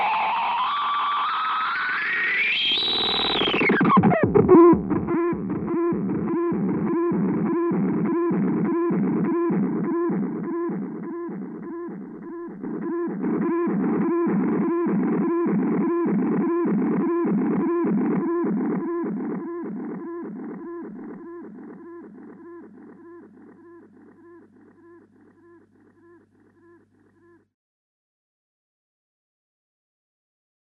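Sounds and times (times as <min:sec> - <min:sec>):
Echo Shifter ES3 analog oscillation effect: 0:00.0 - 0:24.2.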